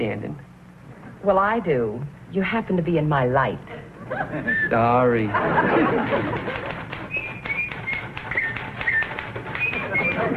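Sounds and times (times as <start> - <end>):
speech: 0.0 - 0.5, 1.2 - 6.7
laughter: 4.0 - 7.2
person whistling: 7.1 - 10.3.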